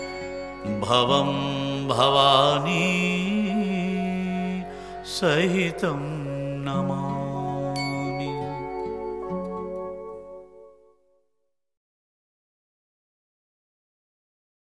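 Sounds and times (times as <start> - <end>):
person chanting a mantra: 0.6 - 9.2.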